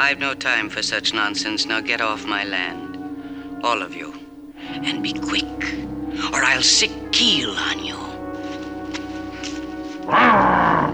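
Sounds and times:
speech: 0:00.0 - 0:03.0, 0:03.6 - 0:08.1, 0:10.1 - 0:10.5
person imitating a wolfman-like growl: 0:10.1 - 0:10.9.

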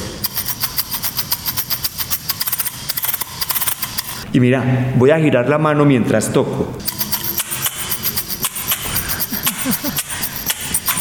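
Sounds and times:
glass jar half-filled with corn kernels shaken: 0:00.0 - 0:04.3, 0:06.8 - 0:10.9
speech: 0:04.4 - 0:07.0.

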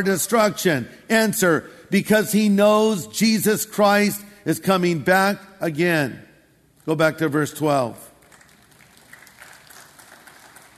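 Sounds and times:
speech: 0:00.0 - 0:06.3, 0:06.9 - 0:08.1
smattering of applause from a congregation: 0:08.2 - 0:10.7.

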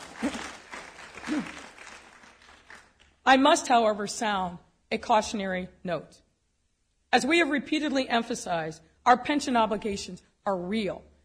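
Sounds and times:
audience applause: 0:00.0 - 0:03.0
speech: 0:03.3 - 0:06.2, 0:07.1 - 0:11.1.

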